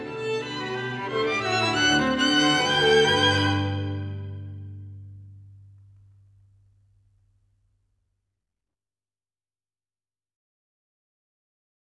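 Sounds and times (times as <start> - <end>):
string quartet playing: 0.0 - 5.8.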